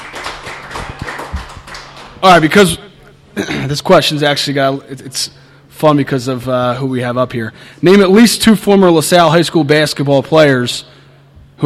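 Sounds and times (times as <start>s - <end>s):
crowd applause: 0.0s - 2.6s
speech: 2.2s - 2.8s, 3.4s - 11.0s.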